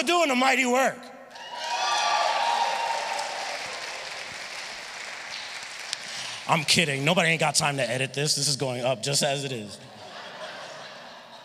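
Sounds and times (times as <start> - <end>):
speech: 0.0 - 1.1, 6.5 - 10.0
audience clapping: 1.4 - 7.7
laughter: 9.8 - 11.4.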